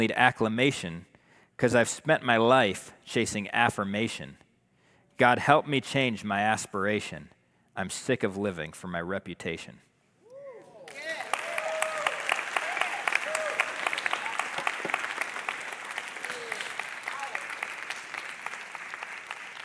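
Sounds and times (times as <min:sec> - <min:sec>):
speech: 0:00.0 - 0:04.4, 0:05.2 - 0:09.9
audience applause: 0:10.8 - 0:19.6.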